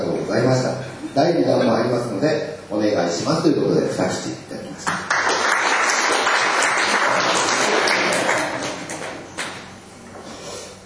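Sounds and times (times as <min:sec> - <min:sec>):
speech: 0:00.3 - 0:05.0
audience applause: 0:05.0 - 0:09.6.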